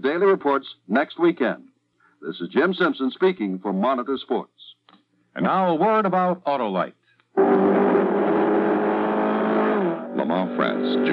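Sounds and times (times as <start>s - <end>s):
speech: 0.0s - 4.8s, 5.4s - 7.6s, 10.6s - 11.1s
Ford Mark IV race car engine droning: 7.4s - 11.1s.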